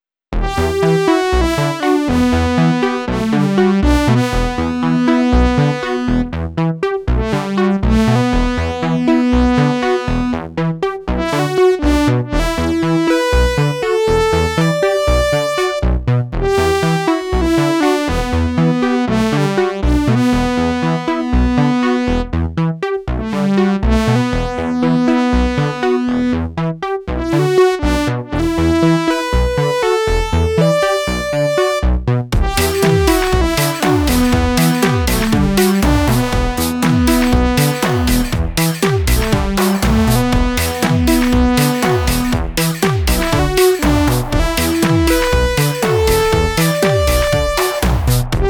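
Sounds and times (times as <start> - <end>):
ARP 2600M synthesizer with spring reverb: 0.4 - 48.4.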